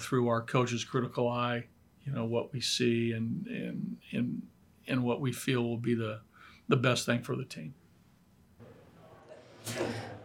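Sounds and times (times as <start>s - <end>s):
speech: 0.0s - 7.8s, 9.6s - 10.2s
person sneezing: 9.6s - 10.2s.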